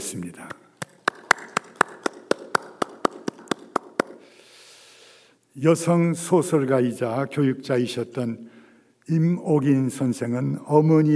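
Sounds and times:
speech: 0.1s - 0.6s, 5.6s - 11.1s
audience clapping in thanks: 0.4s - 4.3s.

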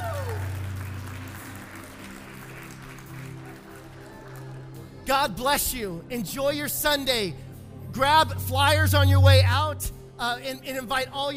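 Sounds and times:
audience clapping: 0.0s - 5.0s
speech: 5.1s - 7.4s, 8.0s - 11.3s.

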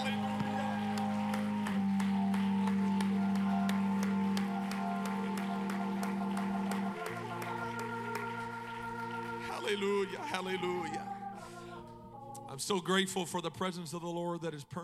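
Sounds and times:
audience clapping hands: 0.0s - 11.7s
sustained organ or keyboard chord: 0.0s - 13.4s
speech: 9.7s - 11.2s, 12.6s - 14.8s.

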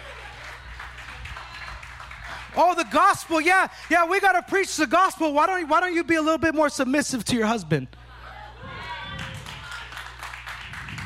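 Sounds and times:
group of women clapping: 0.0s - 4.3s, 9.1s - 11.0s
speech: 2.6s - 8.0s.

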